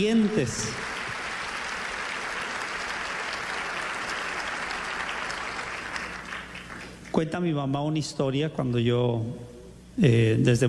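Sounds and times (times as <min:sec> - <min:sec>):
speech: 0:00.0 - 0:00.9, 0:07.2 - 0:10.6
audience applause: 0:00.0 - 0:07.1.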